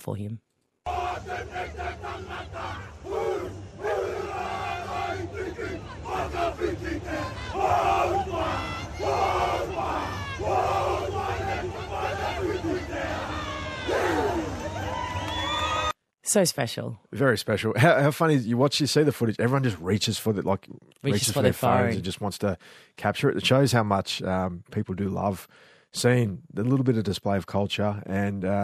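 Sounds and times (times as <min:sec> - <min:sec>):
speech: 0:00.0 - 0:13.3, 0:16.3 - 0:28.6
haka war chant by male voices at stadium: 0:00.9 - 0:14.6
crowd murmur: 0:00.9 - 0:15.3.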